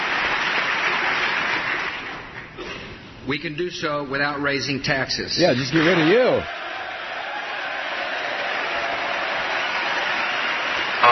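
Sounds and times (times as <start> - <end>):
standing audience applause during a political speech on the federal budget: 0.0 - 2.5, 5.6 - 11.1
speech: 3.3 - 6.6.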